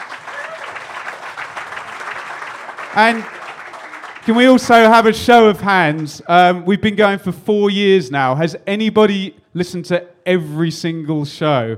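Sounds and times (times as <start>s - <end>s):
live audience applause: 0.0s - 4.9s
speech: 2.9s - 3.4s, 4.2s - 11.7s.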